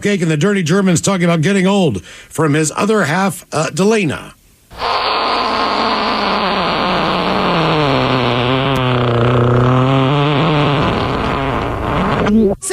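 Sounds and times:
speech: 0.0 - 5.6
fart sound played backwards: 4.7 - 12.6.

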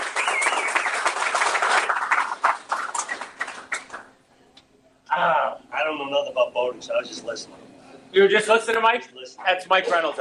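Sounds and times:
audience applause: 0.0 - 4.1
speech: 6.3 - 10.1.

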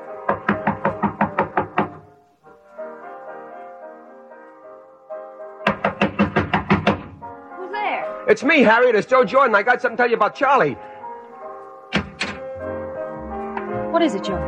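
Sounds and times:
knocking on a door: 0.3 - 2.1, 5.6 - 7.2, 11.9 - 12.4
speech: 8.3 - 10.9, 14.0 - 14.4.

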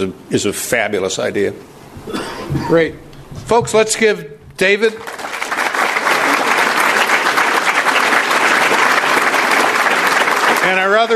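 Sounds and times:
speech: 0.0 - 5.3, 11.0 - 11.1
audience applause: 5.0 - 11.1.

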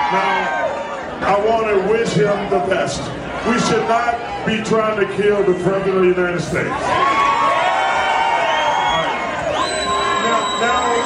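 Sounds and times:
speech: 0.1 - 0.5, 1.2 - 7.2
crowd cheering and applauding: 6.9 - 11.0.

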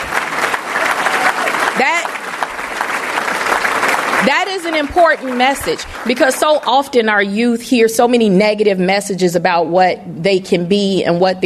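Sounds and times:
audience applause: 0.0 - 6.7
person whooping: 0.8 - 2.0
speech: 4.2 - 11.4.

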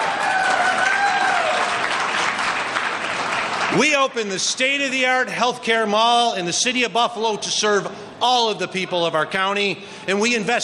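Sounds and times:
audience cheering: 0.0 - 3.9
speech: 3.7 - 10.6.

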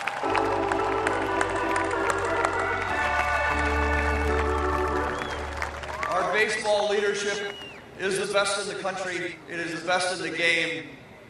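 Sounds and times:
crowd applause: 0.0 - 7.8
speech: 6.5 - 11.0.

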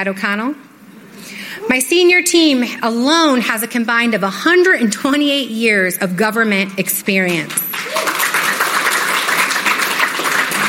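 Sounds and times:
speech: 0.0 - 7.6
audience applause: 7.4 - 10.6.

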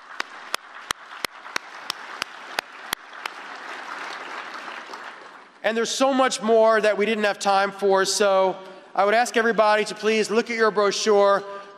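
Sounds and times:
audience applause: 0.0 - 5.7
speech: 5.6 - 11.7.

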